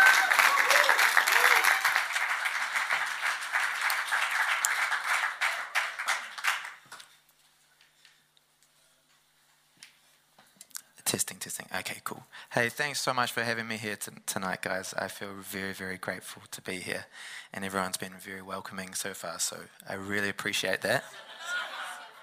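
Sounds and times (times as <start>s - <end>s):
crowd applauding: 0.0s - 7.1s
speech: 11.2s - 21.3s
laughter: 21.0s - 22.2s.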